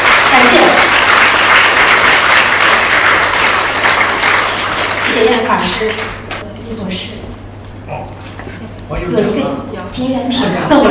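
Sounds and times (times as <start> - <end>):
audience applause: 0.0 - 6.4
speech: 5.6 - 6.2, 9.1 - 10.8.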